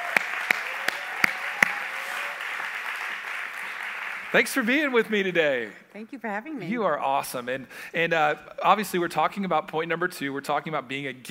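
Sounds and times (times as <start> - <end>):
audience clapping hands to welcome a speaker: 0.0 - 4.4
speech: 4.3 - 11.2.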